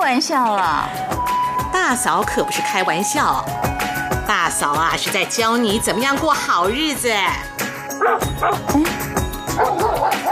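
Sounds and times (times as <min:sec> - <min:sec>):
speech: 0:00.1 - 0:10.3
dogs barking wildly: 0:08.0 - 0:08.8, 0:09.5 - 0:10.3.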